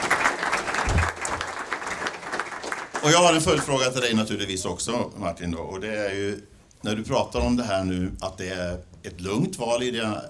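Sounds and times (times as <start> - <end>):
audience applause at a Swedish public debate: 0.0 - 3.8
speech: 3.0 - 10.2.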